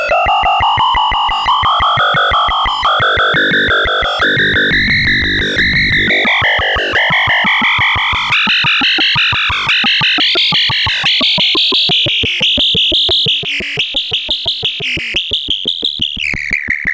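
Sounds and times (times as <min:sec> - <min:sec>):
synthesizer noise: 0:00.0 - 0:15.8.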